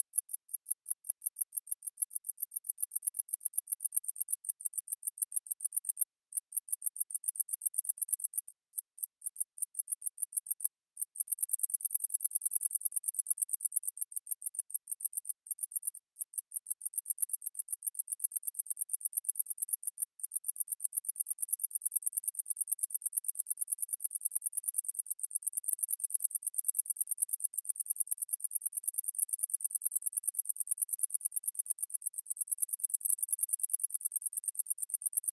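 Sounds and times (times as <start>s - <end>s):
meadow grasshopper chirping: 0.1s - 35.3s.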